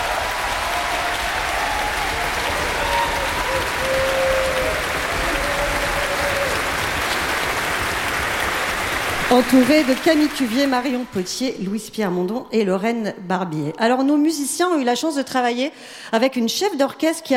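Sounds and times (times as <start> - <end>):
audience applause: 0.0 - 11.4
speech: 9.3 - 17.3.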